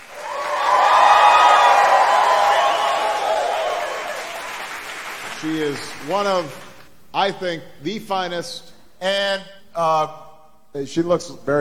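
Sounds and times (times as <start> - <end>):
crowd applause: 0.0 - 6.2
speech: 5.5 - 10.2, 10.8 - 11.6.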